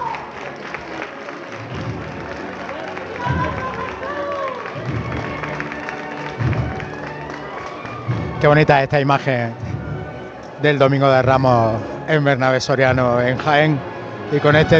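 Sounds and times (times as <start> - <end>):
crowd clapping for a Palm Sunday procession image on Bernabé Soriano in Jaén: 0.0 - 9.6
crowd cheering at a Palm Sunday procession: 0.0 - 13.0
hubbub of voices: 0.0 - 14.7
speech: 8.4 - 9.6, 10.6 - 14.7.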